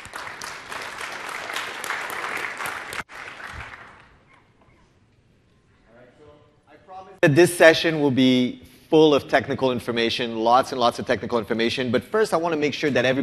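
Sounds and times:
audience applause: 0:00.0 - 0:04.3
speech: 0:07.2 - 0:13.2.

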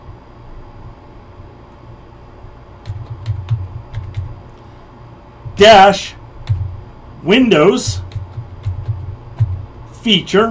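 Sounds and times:
computer keyboard typing a command into Windows PowerShell: 0:02.8 - 0:04.4, 0:06.4 - 0:06.7, 0:07.8 - 0:09.7
speech: 0:05.6 - 0:06.2, 0:07.2 - 0:08.0, 0:10.0 - 0:10.4.

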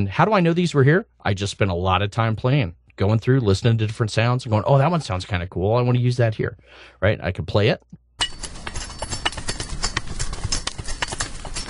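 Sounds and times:
speech: 0:00.0 - 0:08.0
rake scraping in a yard: 0:08.2 - 0:11.6.

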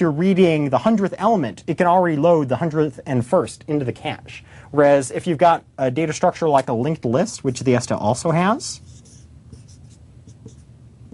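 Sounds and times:
speech: 0:00.0 - 0:08.9
pen scratching while drawing a diagram of linked-list elements: 0:08.8 - 0:11.1.

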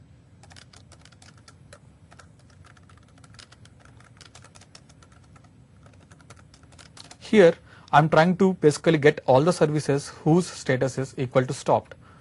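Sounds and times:
typing a command on a computer keyboard: 0:00.4 - 0:07.3
speech: 0:07.3 - 0:12.0.

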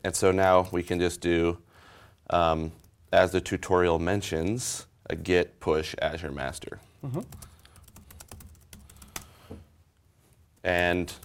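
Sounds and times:
speech: 0:00.0 - 0:01.7, 0:02.3 - 0:07.5, 0:10.6 - 0:11.2
password being typed on a computer keyboard: 0:07.2 - 0:09.3.

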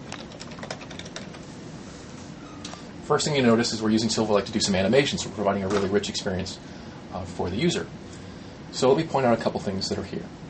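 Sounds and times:
typing a web search on a computer keyboard: 0:00.0 - 0:01.4
speech: 0:03.1 - 0:08.0, 0:08.8 - 0:10.4.

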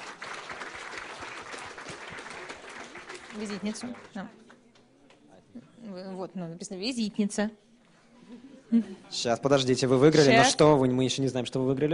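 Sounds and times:
audience applause at a prize presentation: 0:00.0 - 0:04.6
speech: 0:03.4 - 0:04.4, 0:05.8 - 0:07.6, 0:08.3 - 0:11.9.

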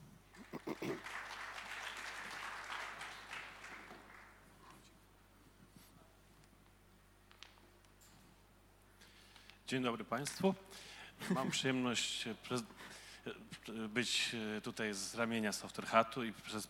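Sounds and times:
audience applause: 0:00.3 - 0:04.4
speech: 0:09.7 - 0:16.6.

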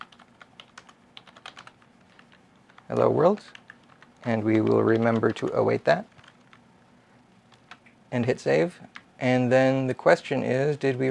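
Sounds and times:
quiet typing on a computer keyboard: 0:00.0 - 0:06.6, 0:07.5 - 0:07.9
speech: 0:02.9 - 0:03.6, 0:04.2 - 0:06.1, 0:08.1 - 0:11.0.

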